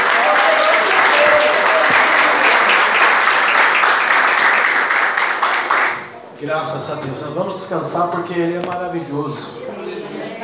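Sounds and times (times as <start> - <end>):
audience applause: 0.0 - 6.2
speech: 6.4 - 9.6.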